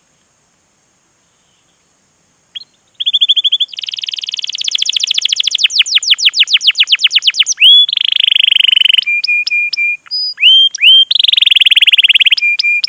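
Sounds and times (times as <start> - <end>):
canary lure recording of long continuous vigorous canary song: 2.6 - 12.8.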